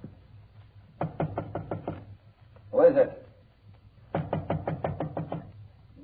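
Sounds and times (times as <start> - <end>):
knocking on an apartment door: 0.9 - 2.1, 4.1 - 5.5
thumps: 0.9 - 2.2, 3.8 - 5.6.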